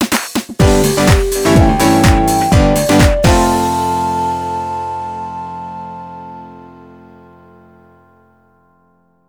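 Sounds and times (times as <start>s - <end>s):
powerful music: 0.6s - 5.1s.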